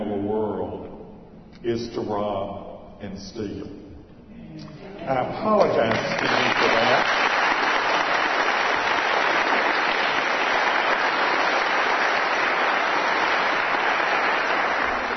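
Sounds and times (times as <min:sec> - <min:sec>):
speech: 0:01.6 - 0:03.9, 0:04.6 - 0:07.3
crowd applauding: 0:05.6 - 0:15.1.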